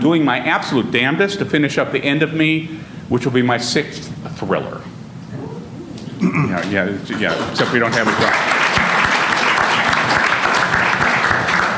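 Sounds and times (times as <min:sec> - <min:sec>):
speech: 0:00.0 - 0:04.9, 0:06.3 - 0:08.6
perfunctory hand clapping: 0:07.2 - 0:11.7.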